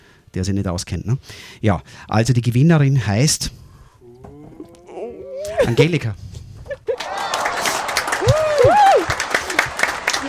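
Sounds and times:
speech: 0:00.4 - 0:03.6, 0:05.6 - 0:06.3
audience applause: 0:07.0 - 0:10.2
cheering whoop: 0:07.0 - 0:10.2.

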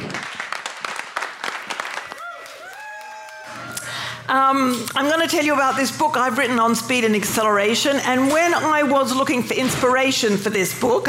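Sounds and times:
audience applause: 0:00.0 - 0:04.0
speech: 0:04.3 - 0:11.0.

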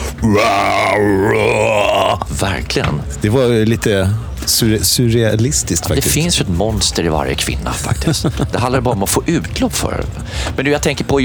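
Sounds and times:
voice imitating a metal growl: 0:00.0 - 0:02.3
laughter: 0:00.0 - 0:11.2
speech: 0:00.2 - 0:11.2.

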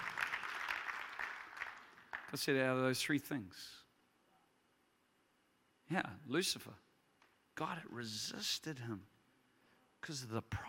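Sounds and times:
audience clapping hands: 0:00.0 - 0:02.7
speech: 0:02.3 - 0:03.8, 0:05.9 - 0:06.8, 0:07.6 - 0:09.1, 0:10.0 - 0:10.6.

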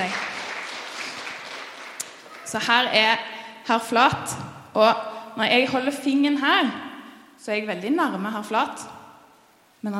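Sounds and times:
audience applause: 0:00.0 - 0:02.6
speech: 0:02.5 - 0:06.8, 0:07.4 - 0:09.0, 0:09.8 - 0:09.9.

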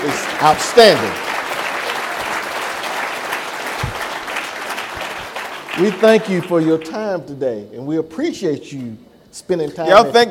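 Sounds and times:
speech: 0:00.0 - 0:01.3, 0:05.8 - 0:10.3
crowd applause: 0:00.0 - 0:07.0.

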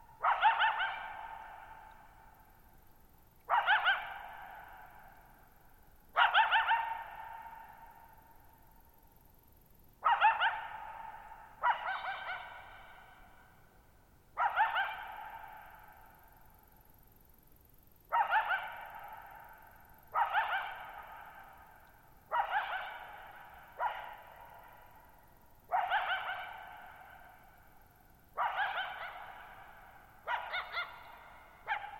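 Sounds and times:
coyote barking: 0:00.2 - 0:02.4, 0:03.4 - 0:05.2, 0:06.1 - 0:08.4, 0:10.0 - 0:13.5, 0:14.4 - 0:16.2, 0:18.1 - 0:31.9.

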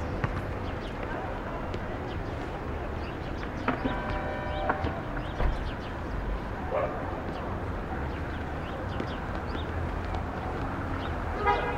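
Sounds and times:
faint voices: 0:00.0 - 0:11.7
traffic rumble of passing vehicles from a Brooklyn rooftop: 0:00.0 - 0:11.7
car horn tooting: 0:03.7 - 0:05.1, 0:11.4 - 0:11.7.

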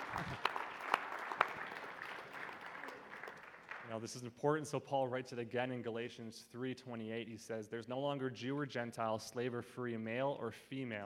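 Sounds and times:
audience clapping: 0:00.0 - 0:04.1
speech: 0:03.9 - 0:11.0.

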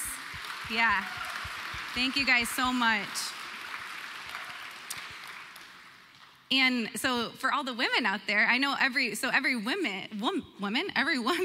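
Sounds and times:
audience applause: 0:00.0 - 0:06.2
speech: 0:00.7 - 0:01.2, 0:02.0 - 0:03.3, 0:06.5 - 0:11.4.

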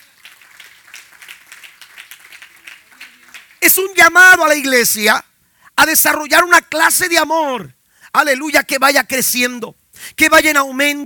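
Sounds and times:
audience applauding: 0:00.0 - 0:03.6
speech: 0:03.7 - 0:11.0.

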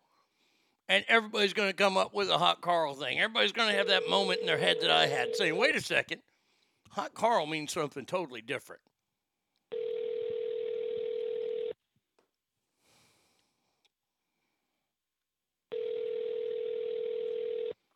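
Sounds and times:
speech: 0:00.9 - 0:06.3, 0:06.9 - 0:08.9
ringing tone of an unanswered telephone call: 0:03.5 - 0:05.8, 0:09.7 - 0:11.8, 0:15.7 - 0:17.8.

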